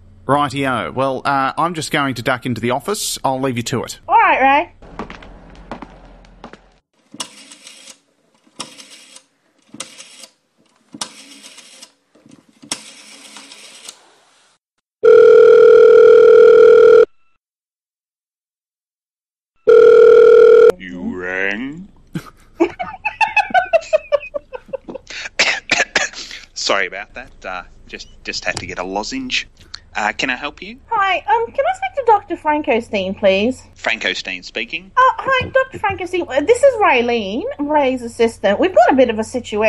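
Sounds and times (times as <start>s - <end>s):
speech: 0.3s - 4.8s, 27.4s - 39.6s
telephone ringing: 15.0s - 17.2s, 19.7s - 20.7s
laughter: 22.1s - 26.6s.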